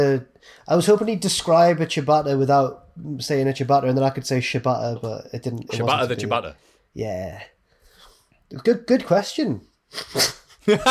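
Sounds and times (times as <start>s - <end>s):
speech: 0.0s - 7.5s, 8.5s - 10.8s
sneeze: 9.9s - 10.5s.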